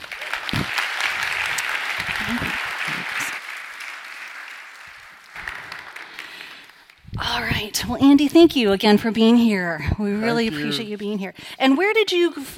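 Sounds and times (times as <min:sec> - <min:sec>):
audience applause welcoming a guest: 0:00.0 - 0:07.7
speech: 0:07.8 - 0:12.5.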